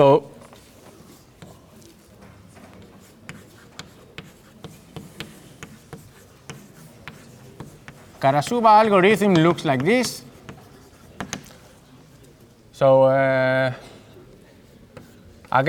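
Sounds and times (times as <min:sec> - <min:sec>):
speech: 0:00.0 - 0:00.3, 0:08.2 - 0:10.3, 0:12.8 - 0:13.9
handwriting strokes: 0:00.6 - 0:12.4, 0:14.6 - 0:15.6
pen tapping: 0:02.3 - 0:11.6.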